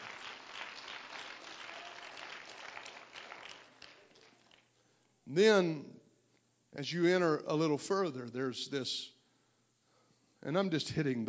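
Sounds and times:
audience clapping hands: 0.0 - 4.7
speech: 5.3 - 5.9, 6.8 - 9.2, 10.4 - 11.2.

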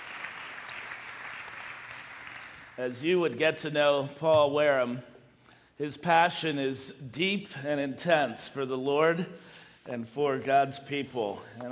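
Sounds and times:
audience clapping: 0.0 - 2.8
speech: 2.8 - 5.1, 5.8 - 11.7.

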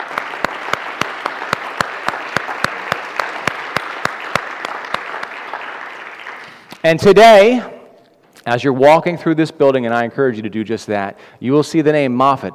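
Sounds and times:
audience round of applause: 0.0 - 6.7
speech: 6.8 - 7.7, 8.4 - 12.5.

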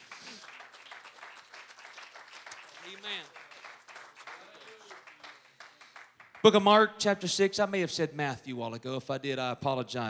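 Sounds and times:
audience clapping hands: 0.0 - 6.8
speech: 2.9 - 3.4, 6.4 - 10.0.

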